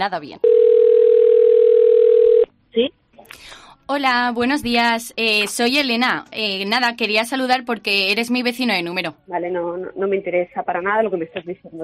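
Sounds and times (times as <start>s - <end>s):
speech: 0.0s - 0.8s, 2.8s - 11.8s
telephone dial tone while calling a neighbour: 0.4s - 2.5s.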